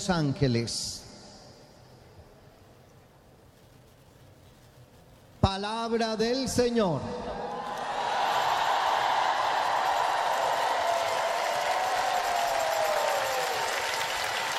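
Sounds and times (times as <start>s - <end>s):
speech: 0.0s - 1.0s, 5.4s - 7.3s
audience applause: 7.6s - 14.5s.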